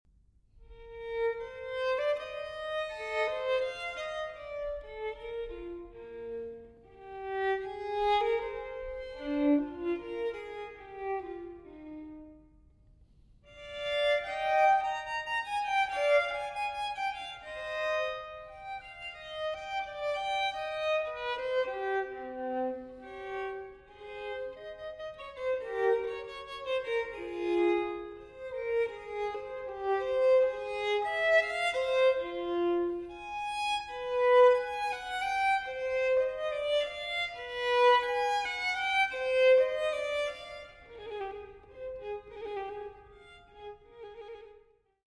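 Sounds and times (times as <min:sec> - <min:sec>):
solo violin in E major: 0:00.6 - 0:12.8, 0:13.4 - 0:45.0.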